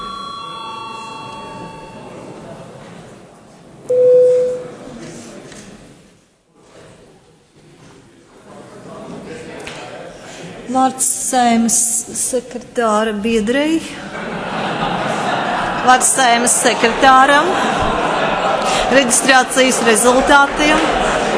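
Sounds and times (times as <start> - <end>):
parliament registration bell electronic tone: 0.0 - 2.4, 3.9 - 4.8
murmur of voices: 0.0 - 21.3
speech: 10.8 - 14.1, 15.9 - 21.1
laughter: 13.9 - 21.3.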